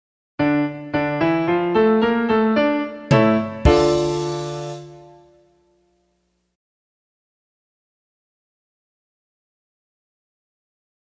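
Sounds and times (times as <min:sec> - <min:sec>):
music in D minor: 0:00.4 - 0:06.0.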